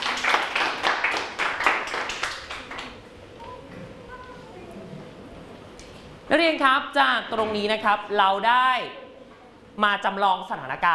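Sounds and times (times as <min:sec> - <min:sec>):
classroom applause for a student: 0:00.0 - 0:03.0
speech: 0:06.3 - 0:09.0, 0:09.8 - 0:10.9.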